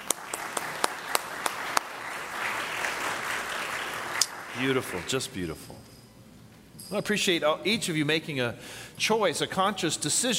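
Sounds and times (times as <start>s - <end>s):
audience clapping: 0.0s - 5.5s
speech: 4.6s - 5.9s, 6.9s - 10.3s.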